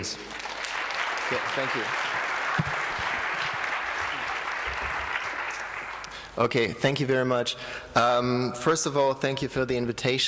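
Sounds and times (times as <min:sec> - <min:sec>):
speech: 0:00.0 - 0:00.3, 0:01.3 - 0:02.0, 0:02.6 - 0:02.8, 0:06.4 - 0:10.2
audience applause: 0:00.0 - 0:06.4.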